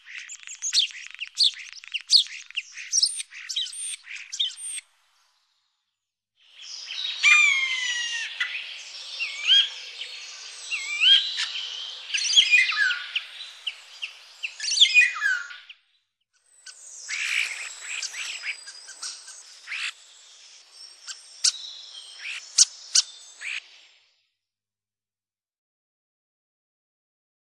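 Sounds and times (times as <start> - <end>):
common starlings calling: 0.0 - 4.8, 6.6 - 15.8, 16.6 - 23.8.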